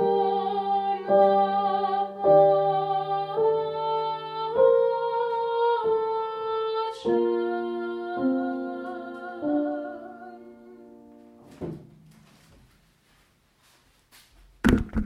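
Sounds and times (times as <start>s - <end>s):
alto voice singing a liturgical piece: 0.0s - 11.2s.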